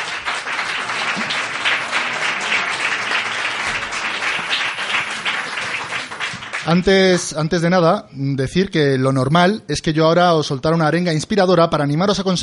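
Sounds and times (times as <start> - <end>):
audience applause: 0.0 - 7.3
speech: 6.7 - 12.4.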